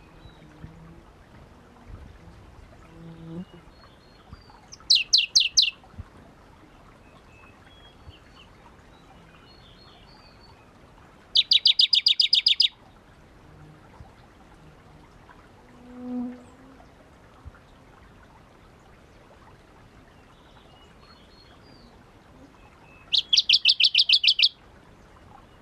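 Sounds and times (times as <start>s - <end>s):
faint background hiss: 0.0s - 25.5s
shrub frog clicking calls: 4.8s - 5.7s, 11.4s - 12.7s, 23.1s - 24.5s.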